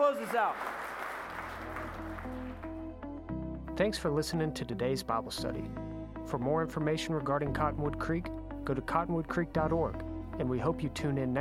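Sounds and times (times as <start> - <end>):
crowd clapping and cheering: 0.0 - 2.8
speech: 0.1 - 0.8, 3.8 - 11.3.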